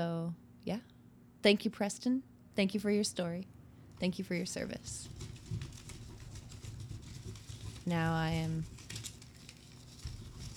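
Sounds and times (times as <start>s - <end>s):
speech: 0.7s - 5.6s, 7.9s - 8.7s
piece of paper being unfolded: 4.9s - 10.5s.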